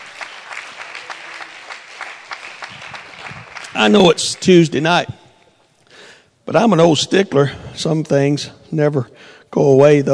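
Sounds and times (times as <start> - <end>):
audience clapping hands: 0.0 - 5.5
speech: 3.8 - 5.2, 6.5 - 10.1.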